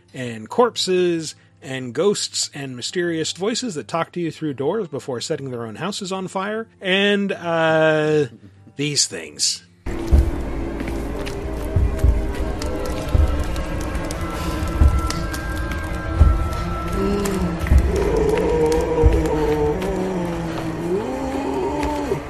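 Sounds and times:
speech: 0.1s - 9.7s
booming footfalls of a giant troll: 9.9s - 20.0s
low droning tonal background: 9.9s - 22.2s.

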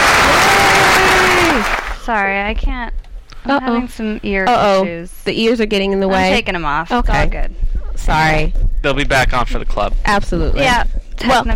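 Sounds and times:
hand clapping: 0.0s - 2.0s
speech: 2.1s - 11.5s.

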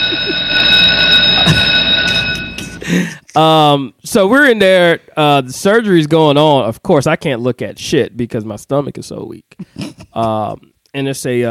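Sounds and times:
bell ringing sound effect: 0.0s - 3.2s
speech: 2.9s - 11.5s.

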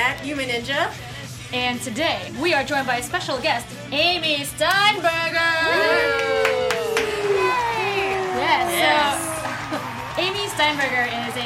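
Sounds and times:
speech: 0.2s - 6.5s, 10.2s - 11.4s
audience clapping and cheering: 5.7s - 11.4s.

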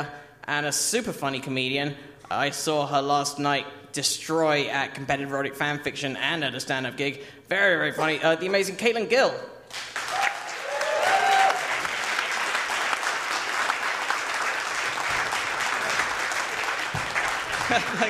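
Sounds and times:
speech: 0.0s - 10.0s
audience applause: 9.8s - 18.0s
whoops and cheers: 10.0s - 11.8s
laughter: 17.3s - 18.0s.

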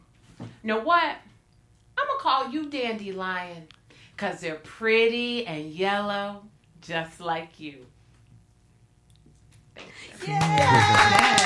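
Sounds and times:
speech: 0.6s - 1.3s, 2.2s - 8.0s, 9.8s - 11.4s
applause sound effect: 10.2s - 11.4s
cheering voices: 10.2s - 11.4s.

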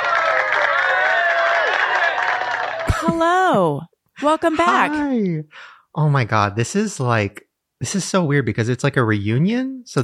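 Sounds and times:
audience applause and cheering for a guest: 0.0s - 3.3s
speech: 3.2s - 10.0s.

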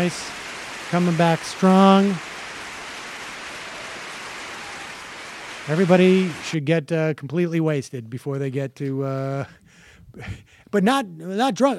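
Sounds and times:
speech: 0.0s - 2.3s, 5.7s - 11.7s
applause: 0.0s - 6.6s.

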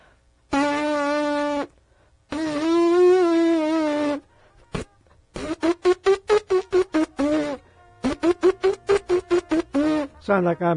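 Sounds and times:
trumpet lip buzzing without mouthpiece: 0.5s - 10.2s
speech: 10.3s - 10.7s.

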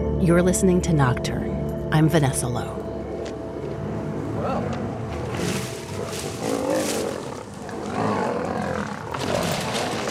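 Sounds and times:
speech: 0.2s - 2.8s
male lions roaring while scuffling: 3.8s - 10.0s.

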